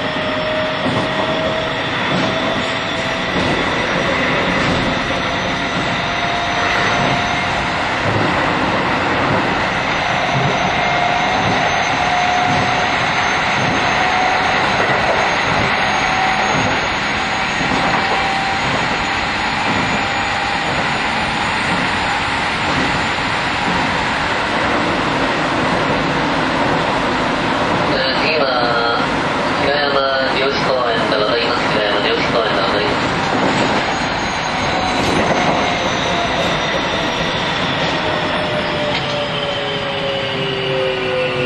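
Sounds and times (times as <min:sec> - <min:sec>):
VVVF train running between Minamidaira and Hirayama-jōshi-kōen: 0:00.0 - 0:41.4.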